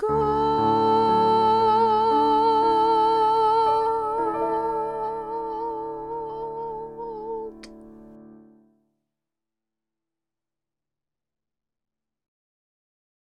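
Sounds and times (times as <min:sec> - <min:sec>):
alto choir singing: 0:00.1 - 0:07.7.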